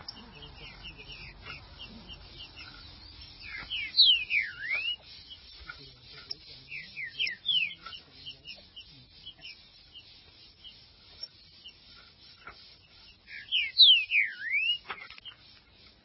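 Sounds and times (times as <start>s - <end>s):
green-winged saltator whistled song: 3.4s - 5.1s, 13.3s - 14.9s.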